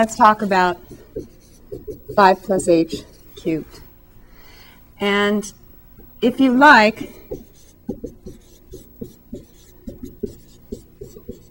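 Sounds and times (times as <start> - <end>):
speech: 0.0 - 3.8, 5.0 - 5.6, 6.2 - 8.4
pen writing on scratch paper: 0.1 - 3.6, 7.0 - 11.4
pen tip tapping paper: 0.9 - 2.2, 7.3 - 11.4.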